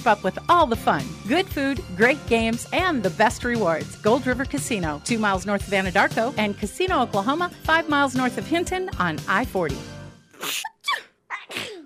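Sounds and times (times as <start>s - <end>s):
speech: 0.0s - 10.7s
person sneezing during allergy and hay fever season: 10.3s - 11.8s.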